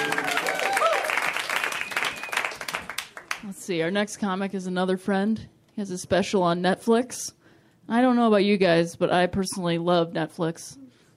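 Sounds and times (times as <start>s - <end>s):
audience applause and cheering for a comedian at a stand-up comedy show: 0.0s - 3.4s
speech: 3.7s - 10.8s.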